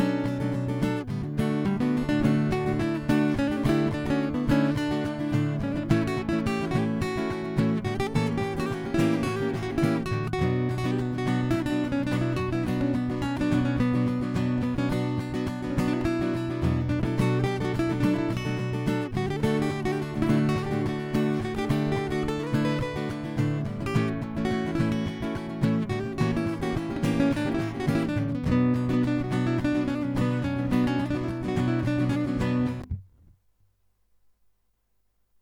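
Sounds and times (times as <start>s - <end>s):
latin chords and improvisation: 0.0s - 33.3s.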